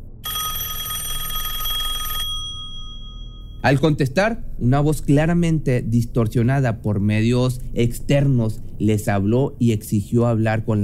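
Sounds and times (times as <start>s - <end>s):
telephone bell ringing: 0.2s - 3.6s
low rumble: 3.3s - 10.8s
speech: 3.6s - 10.8s.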